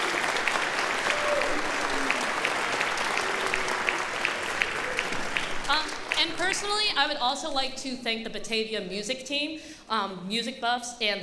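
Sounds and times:
audience applause: 0.0s - 6.8s
speech: 6.5s - 11.2s.

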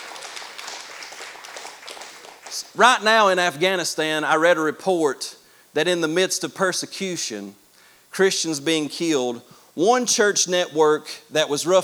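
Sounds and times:
audience hand clapping: 0.0s - 3.6s
speech: 2.5s - 11.8s.

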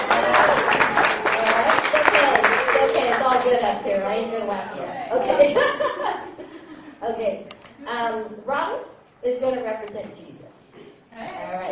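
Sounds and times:
audience clapping for a volunteer: 0.0s - 3.8s
speech: 4.1s - 6.1s, 7.1s - 10.3s
laughter: 5.0s - 6.8s.

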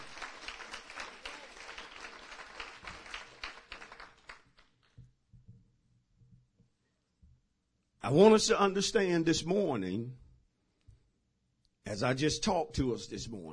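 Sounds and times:
audience clapping: 0.0s - 5.0s
speech: 8.1s - 10.2s, 11.9s - 13.5s.

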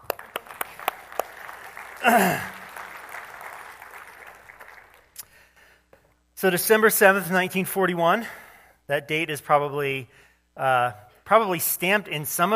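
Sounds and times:
audience clapping: 0.0s - 5.4s
speech: 2.0s - 2.5s, 6.4s - 12.5s.

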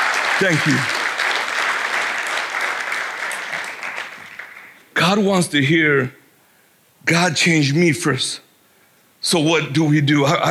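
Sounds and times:
crowd clapping: 0.0s - 4.8s
speech: 0.4s - 1.0s, 5.0s - 6.2s, 7.0s - 8.4s, 9.2s - 10.4s.

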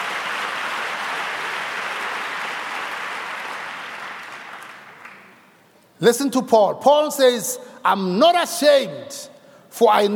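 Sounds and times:
audience applause: 0.0s - 5.4s
speech: 6.0s - 10.1s.

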